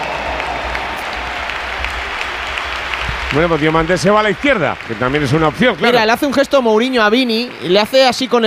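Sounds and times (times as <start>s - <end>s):
stadium crowd applauding at the Bernabéu: 0.0s - 7.2s
speech: 3.3s - 8.4s.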